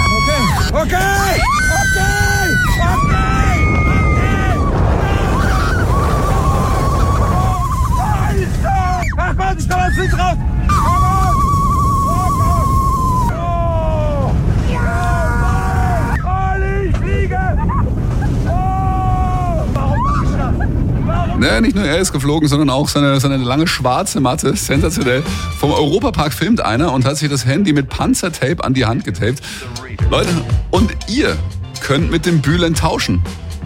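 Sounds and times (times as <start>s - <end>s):
roller coaster riders shrieking and yelling: 0.0s - 21.4s
roller coaster ride at 130 km/h: 0.0s - 26.8s
speech: 21.6s - 33.4s.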